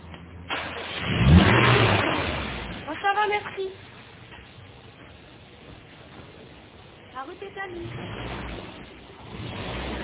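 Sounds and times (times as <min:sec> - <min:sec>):
rental car engine starting and revving: 0:00.7 - 0:02.9, 0:07.7 - 0:10.0
speech: 0:07.2 - 0:08.3.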